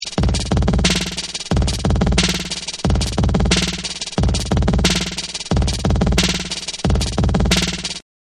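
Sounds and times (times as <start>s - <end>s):
breakbeat drums: 0.0s - 8.0s.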